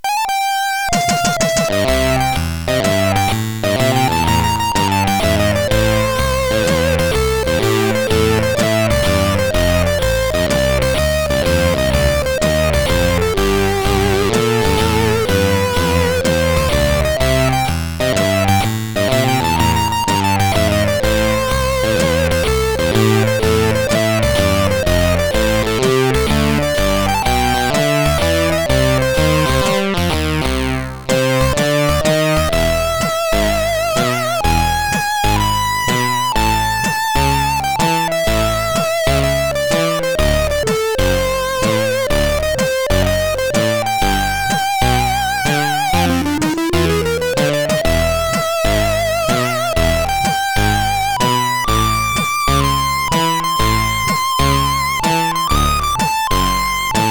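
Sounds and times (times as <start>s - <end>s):
SID CSG8580R5 chip music: 0.0s - 57.0s.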